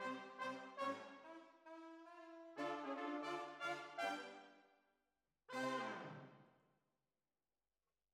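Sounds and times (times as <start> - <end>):
horns: 0.0 - 4.5, 5.5 - 6.4.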